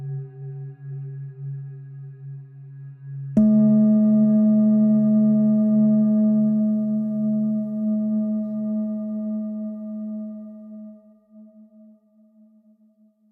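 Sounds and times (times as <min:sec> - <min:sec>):
mystical bells: 0:03.4 - 0:11.7.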